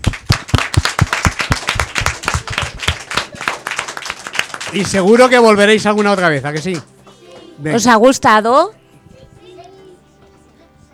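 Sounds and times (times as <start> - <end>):
applause: 0.0 - 7.5
speech: 4.7 - 6.9, 7.6 - 8.8.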